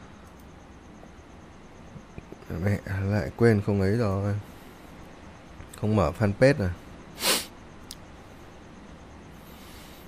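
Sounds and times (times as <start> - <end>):
speech: 2.5 - 4.5, 5.8 - 6.8
nasal sniffling: 7.2 - 7.5.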